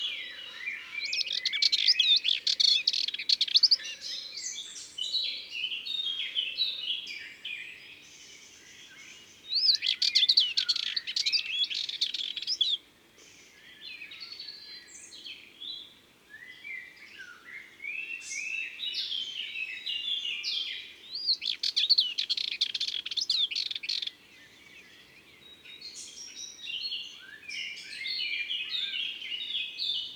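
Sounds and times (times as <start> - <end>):
Sardinian warbler song: 0.0 - 30.1.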